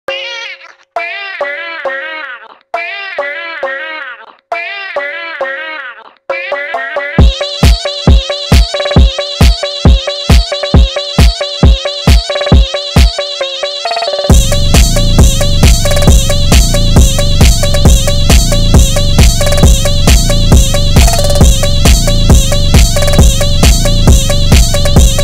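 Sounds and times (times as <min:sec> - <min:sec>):
phonk remix: 0:06.3 - 0:25.2.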